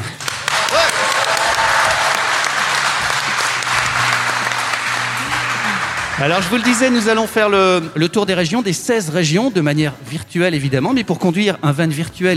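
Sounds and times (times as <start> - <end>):
large crowd applauding: 0.0 - 8.0
crowd cheering with shouts and whoops: 0.3 - 7.4
speech: 6.2 - 12.3.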